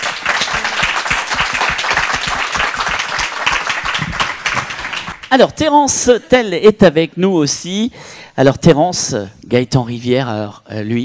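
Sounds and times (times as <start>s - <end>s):
audience applause: 0.0s - 5.3s
speech: 5.3s - 11.0s.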